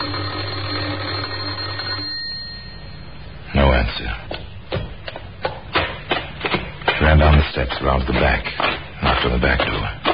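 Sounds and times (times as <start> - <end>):
rattling electric doorbell ringing: 0.0 - 3.2
speech: 3.8 - 4.5, 7.0 - 10.0.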